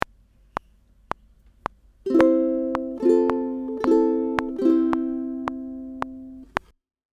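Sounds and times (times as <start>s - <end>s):
ukulele strumming: 2.0s - 6.7s.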